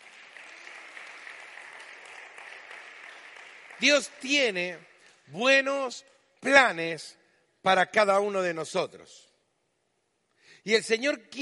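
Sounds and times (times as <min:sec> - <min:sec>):
audience applause: 0:00.0 - 0:05.1
speech: 0:03.8 - 0:09.3, 0:10.6 - 0:11.3.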